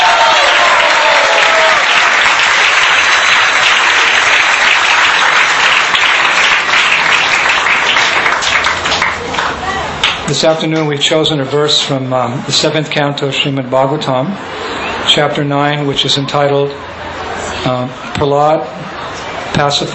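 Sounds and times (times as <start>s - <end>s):
round of applause: 0.0s - 10.2s
speech: 10.3s - 16.9s, 17.6s - 19.0s, 19.6s - 19.9s.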